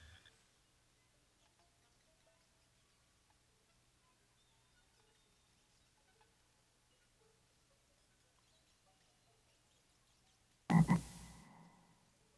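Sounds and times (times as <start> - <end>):
frog croaking: 10.7 - 11.8.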